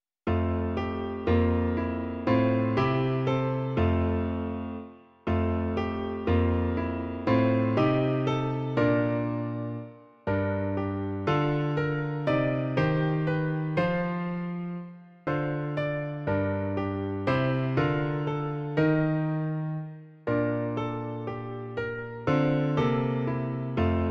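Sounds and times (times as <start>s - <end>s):
piano: 0.2s - 24.1s.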